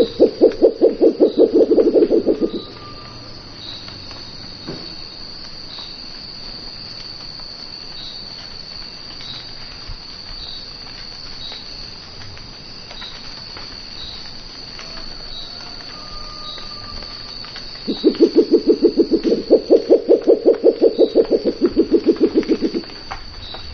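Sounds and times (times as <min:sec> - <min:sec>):
murucututu owl calling: 0:00.0 - 0:03.2, 0:17.9 - 0:22.9.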